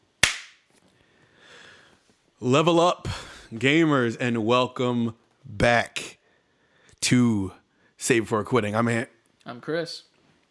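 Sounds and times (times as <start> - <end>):
hand clap into a microphone: 0.2 - 0.6
speech: 2.4 - 6.0, 7.1 - 10.1.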